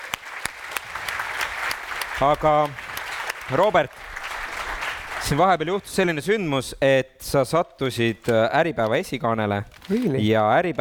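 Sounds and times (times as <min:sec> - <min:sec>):
audience applause: 0:00.0 - 0:05.9
speech: 0:02.2 - 0:02.8, 0:03.5 - 0:04.1, 0:05.2 - 0:10.7.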